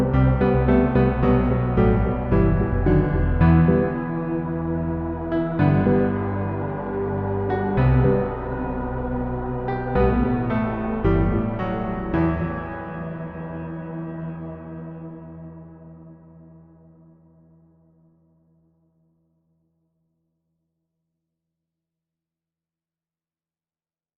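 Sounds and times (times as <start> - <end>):
foggy piano: 0.0 - 17.9.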